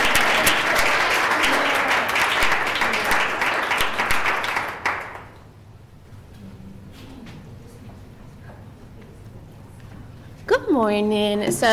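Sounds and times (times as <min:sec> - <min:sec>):
audience applause welcoming a speaker at a parenting talk: 0:00.0 - 0:05.4
speech: 0:10.8 - 0:11.7.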